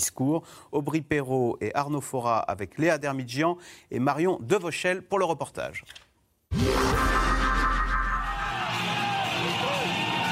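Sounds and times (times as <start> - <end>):
speech: 0.0 - 6.0
large crowd cheering with yells and whoops: 6.9 - 10.3.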